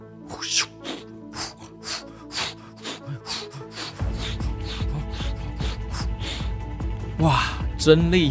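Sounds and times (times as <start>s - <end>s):
hand pump inflating a bicycle inner tube: 0.3s - 6.4s
speech: 0.4s - 0.7s, 7.2s - 8.2s.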